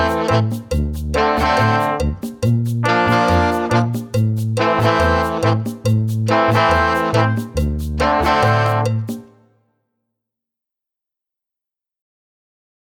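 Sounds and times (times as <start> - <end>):
happy music without drums: 0.0 - 9.5.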